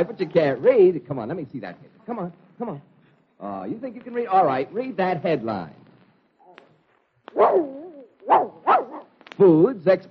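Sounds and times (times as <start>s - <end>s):
speech: 0.0s - 5.8s, 7.3s - 8.8s, 9.4s - 10.0s
dog yowling and barking: 7.3s - 9.1s.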